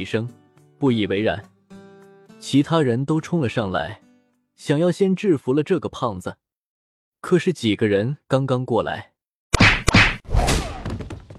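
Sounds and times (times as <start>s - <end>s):
speech: 0.0s - 1.5s, 2.4s - 4.0s, 4.6s - 6.4s, 7.2s - 9.1s
punches knocking people down: 9.5s - 11.3s.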